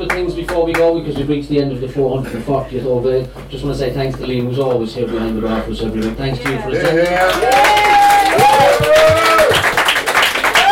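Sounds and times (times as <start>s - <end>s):
speech: 0.2s - 9.0s
audience applause: 6.4s - 10.6s.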